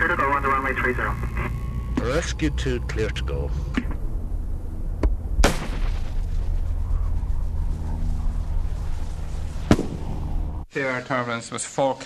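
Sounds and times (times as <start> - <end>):
low rumble: 0.0 - 10.7
speech: 0.7 - 1.3, 2.0 - 4.0, 10.8 - 12.0
bird-scaring shots fired on airport runway: 5.4 - 7.1, 9.4 - 10.6.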